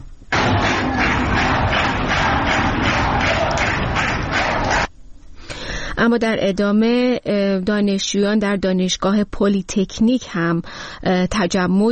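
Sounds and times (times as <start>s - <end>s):
University of Guilan students clapping in unison in protest: 0.3s - 4.9s
speech: 6.0s - 11.9s.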